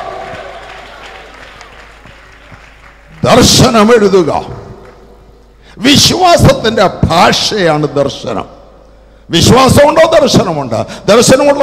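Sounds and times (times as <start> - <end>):
congregation clapping during a Malayalam sermon: 0.0 - 5.3
speech: 3.2 - 4.6, 5.8 - 8.6, 9.3 - 11.6.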